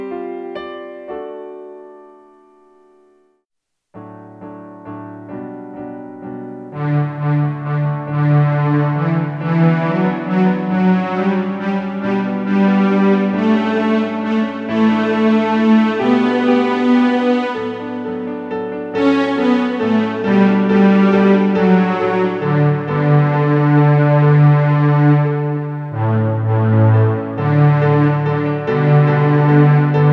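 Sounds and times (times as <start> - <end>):
baritone instrumental: 6.7 - 30.1.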